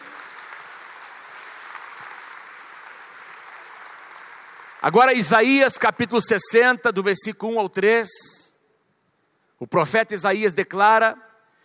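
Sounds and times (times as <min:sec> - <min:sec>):
audience applause: 0:00.0 - 0:05.3
speech: 0:04.8 - 0:08.5, 0:09.6 - 0:11.3.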